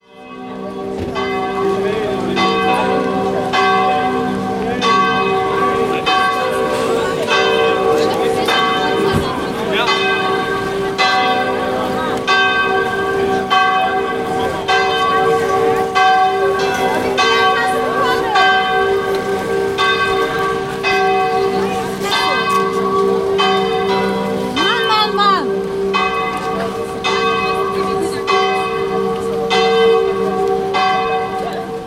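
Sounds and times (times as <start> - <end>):
church bells ringing: 0.0 - 31.8.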